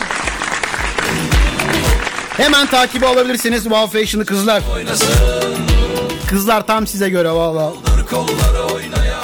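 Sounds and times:
applause: 0:00.0 - 0:03.6
speech: 0:02.4 - 0:09.1.

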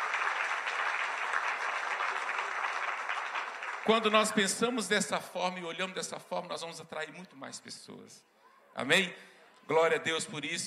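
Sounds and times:
audience applauding: 0:00.0 - 0:04.7
speech: 0:03.9 - 0:10.6.

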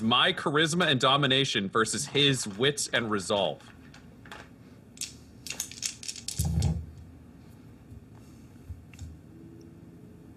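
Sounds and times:
speech: 0:00.0 - 0:03.8
dice rolling on a hard surface: 0:03.4 - 0:06.8.

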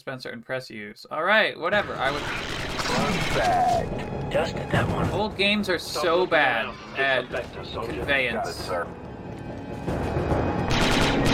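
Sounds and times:
speech: 0:00.0 - 0:09.0
gunfire in an older video game: 0:01.8 - 0:03.6, 0:10.6 - 0:11.3.

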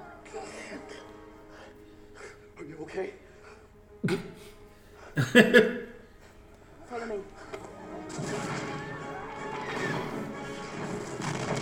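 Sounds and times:
speech: 0:02.8 - 0:03.3, 0:04.0 - 0:04.6, 0:05.2 - 0:05.8
explosions: 0:08.1 - 0:11.6.

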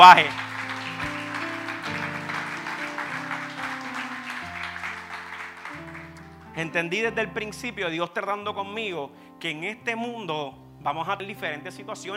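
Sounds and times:
speech: 0:00.0 - 0:00.4, 0:06.6 - 0:12.1
audience applause: 0:00.0 - 0:06.4
sustained keyboard chords: 0:00.0 - 0:10.2.

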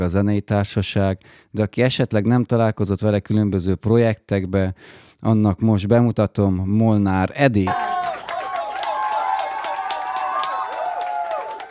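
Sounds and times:
speech: 0:00.0 - 0:07.8
applause: 0:07.7 - 0:11.7.

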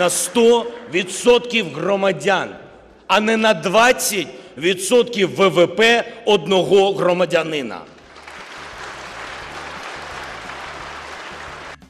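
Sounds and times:
speech: 0:00.0 - 0:07.9
audience applause: 0:08.0 - 0:11.8.

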